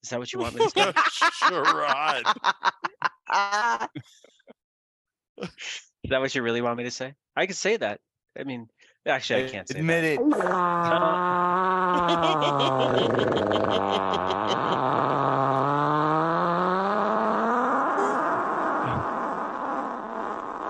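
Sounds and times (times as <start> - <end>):
speech: 0.0 - 4.3, 5.4 - 15.1
laughter: 0.4 - 4.0, 10.8 - 15.0
fart sound effect: 9.4 - 20.6.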